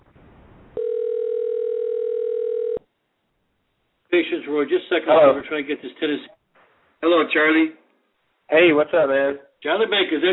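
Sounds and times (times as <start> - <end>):
faint noise: 0.0 - 10.3
telephone dial tone while dialing a caller: 0.8 - 2.8
speech: 4.2 - 6.4, 7.0 - 7.8, 8.5 - 10.3.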